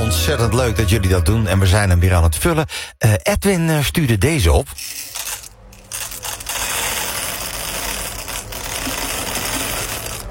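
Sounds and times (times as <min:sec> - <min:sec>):
speech: 0:00.1 - 0:05.1
coffee beans poured into coffee grinder: 0:04.7 - 0:10.2.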